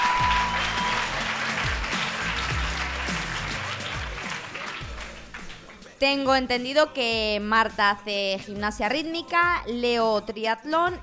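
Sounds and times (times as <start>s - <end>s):
audience applause: 0.0s - 5.9s
speech: 6.0s - 11.0s.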